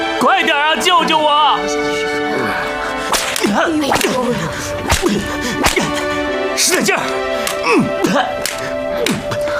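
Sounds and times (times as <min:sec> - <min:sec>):
speech: 0:00.2 - 0:02.7, 0:03.4 - 0:09.5
whip lash strike: 0:03.1 - 0:07.6, 0:08.4 - 0:09.3.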